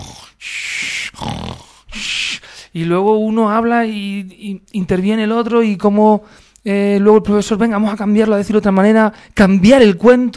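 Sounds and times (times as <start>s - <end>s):
class of schoolchildren imitating snoring in a Latin lesson: 0.0s - 2.1s
speech: 2.8s - 10.3s.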